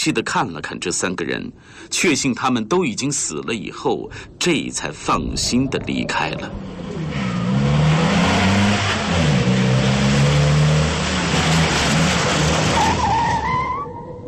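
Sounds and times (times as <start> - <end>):
speech: 0.0 - 7.3
ambulance speeding in and braking: 5.3 - 13.0.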